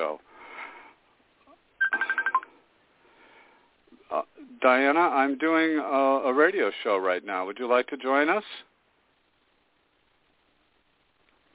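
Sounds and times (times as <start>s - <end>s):
speech: 0.0s - 0.3s, 4.6s - 8.7s
incoming phone call ringing: 1.8s - 2.6s.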